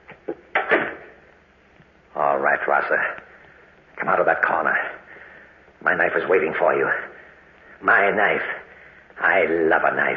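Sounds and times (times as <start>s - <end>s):
outer door opening: 0.1s - 1.1s
speech: 2.5s - 3.2s, 4.0s - 4.9s, 5.8s - 7.1s, 7.8s - 8.6s, 9.2s - 10.1s.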